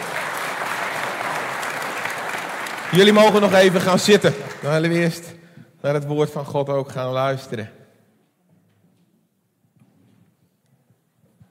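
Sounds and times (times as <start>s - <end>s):
audience applause: 0.0s - 5.2s
speech: 2.9s - 7.8s.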